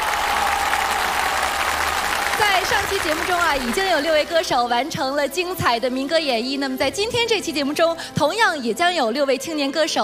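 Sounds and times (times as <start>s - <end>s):
audience applause welcoming young folk singers: 0.0s - 4.4s
speech: 2.7s - 10.0s.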